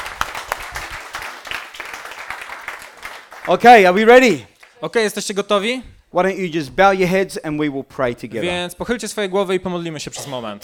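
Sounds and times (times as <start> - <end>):
audience applause: 0.0 - 3.9
speech: 3.4 - 10.6.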